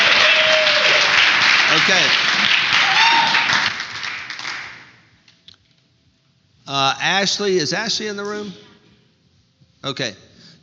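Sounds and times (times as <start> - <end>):
audience clapping at a group meeting: 0.0 - 5.0
speech: 1.9 - 2.5, 6.7 - 8.7, 9.8 - 10.3.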